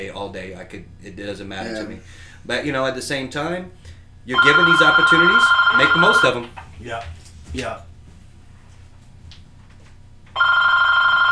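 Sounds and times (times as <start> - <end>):
speech: 0.0 - 7.9
telephone bell ringing: 4.3 - 6.4, 10.4 - 11.3.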